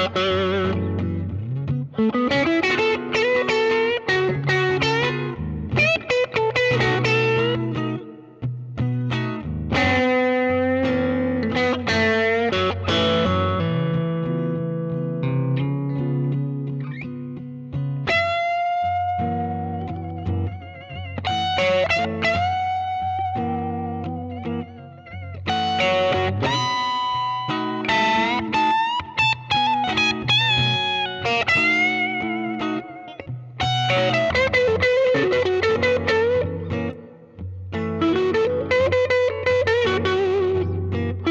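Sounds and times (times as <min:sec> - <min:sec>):
distorted electric guitar on middle pickup: 0:00.0 - 0:41.3.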